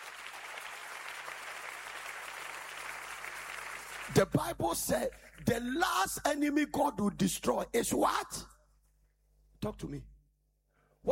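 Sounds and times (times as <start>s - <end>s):
audience clapping hands: 0.0s - 5.8s
speech: 4.1s - 8.5s, 9.6s - 10.1s.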